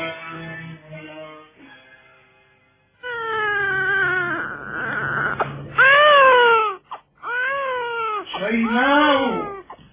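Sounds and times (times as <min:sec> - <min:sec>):
baby crying from hunger: 0:03.1 - 0:09.8.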